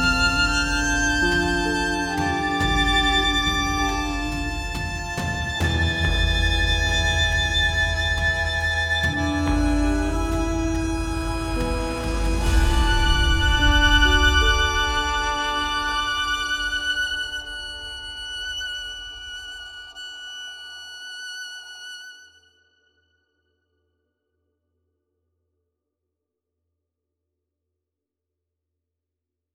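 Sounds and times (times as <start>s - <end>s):
intimate violin reverie: 0.0s - 22.8s.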